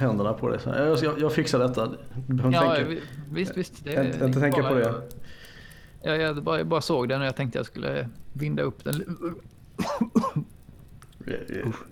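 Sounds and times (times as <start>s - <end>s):
speech: 0.0s - 5.4s, 6.0s - 10.4s, 11.2s - 11.8s
small sour burp from acid reflux: 9.0s - 10.5s.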